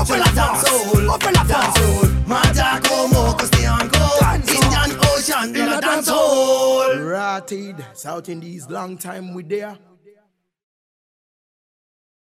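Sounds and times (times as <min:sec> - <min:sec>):
dancehall music: 0:00.0 - 0:08.3.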